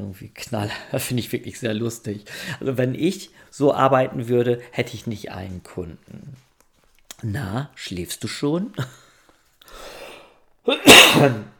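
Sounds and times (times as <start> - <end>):
speech: 0.0 - 6.5, 7.2 - 9.0, 10.6 - 11.5
coughing fit: 10.7 - 11.5.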